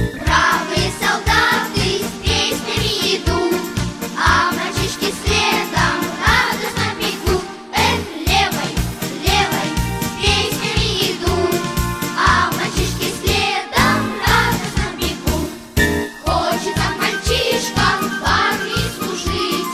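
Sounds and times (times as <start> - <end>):
children's choir singing: 0.1 - 19.7.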